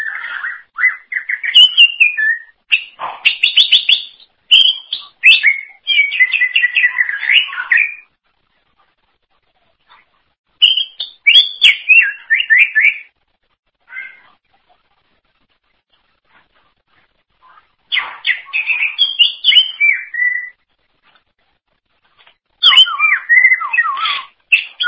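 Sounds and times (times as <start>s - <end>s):
Greater green leafbird warbling: 0.0s - 8.1s, 10.6s - 13.1s, 17.4s - 20.6s, 22.6s - 24.8s.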